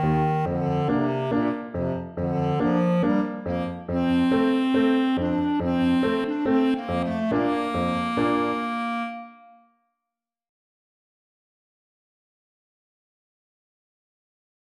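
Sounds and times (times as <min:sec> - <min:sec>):
alto clarinet: 0:00.0 - 0:09.7.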